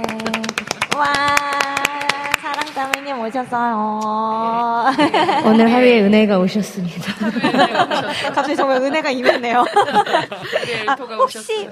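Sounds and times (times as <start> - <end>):
applause: 0.0 - 3.3
speech: 3.2 - 11.7
laughter: 4.8 - 5.8, 7.0 - 11.1.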